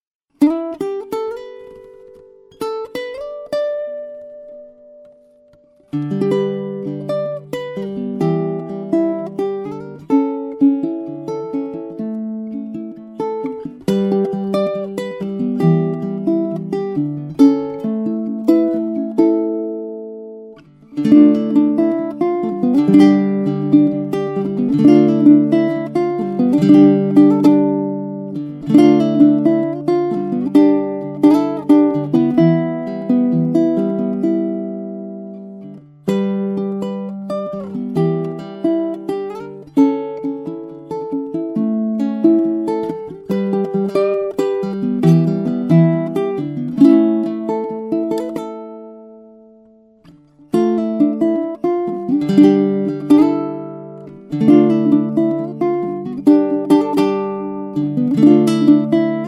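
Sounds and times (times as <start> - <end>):
ukulele: 0.3 - 59.2.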